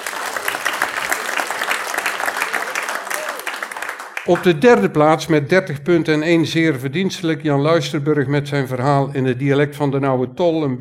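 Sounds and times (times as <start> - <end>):
audience applause: 0.0 - 4.8
speech: 4.2 - 10.8.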